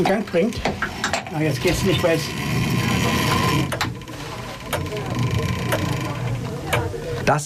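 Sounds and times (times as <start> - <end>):
speech: 0.0 - 2.7, 7.3 - 7.4
chapel clockwork mechanism being cranked: 0.0 - 7.2.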